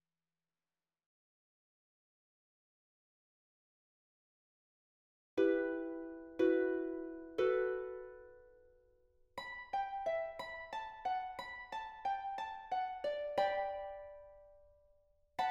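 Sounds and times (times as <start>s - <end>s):
harp: 5.4s - 8.7s, 9.4s - 14.8s.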